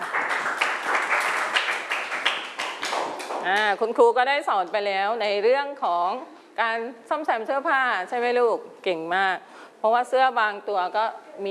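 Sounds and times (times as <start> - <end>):
classroom applause for a student group: 0.0 - 3.7
speech: 3.5 - 11.4.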